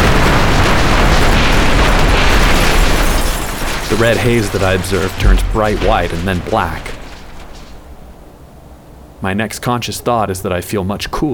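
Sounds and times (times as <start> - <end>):
plane exploding: 0.0 - 8.3
speech: 3.9 - 7.0, 9.2 - 11.3.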